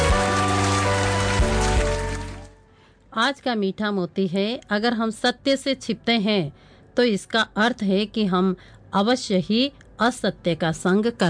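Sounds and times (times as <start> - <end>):
crowd applauding: 0.0 - 2.6
speech: 3.2 - 11.2.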